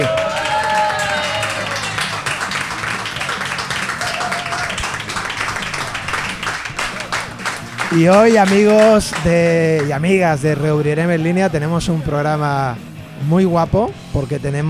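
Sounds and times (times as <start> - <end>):
cheers and whistles: 0.0 - 2.2, 3.8 - 6.3
audience applause: 0.0 - 10.0
speech: 7.9 - 14.6.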